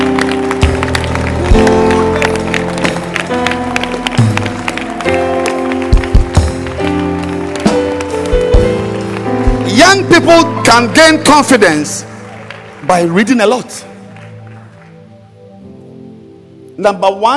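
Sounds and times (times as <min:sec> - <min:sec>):
audience clapping hands: 0:00.0 - 0:15.6
speech: 0:10.3 - 0:12.1, 0:12.9 - 0:13.9, 0:16.8 - 0:17.3.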